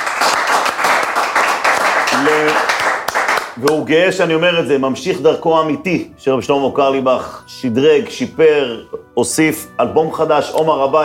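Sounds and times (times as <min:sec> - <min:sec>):
audience applause: 0:00.0 - 0:03.6
speech: 0:03.6 - 0:11.0.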